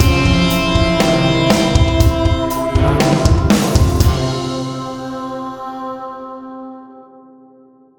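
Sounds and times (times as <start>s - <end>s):
short Arabian-style stinger: 0.0s - 5.4s.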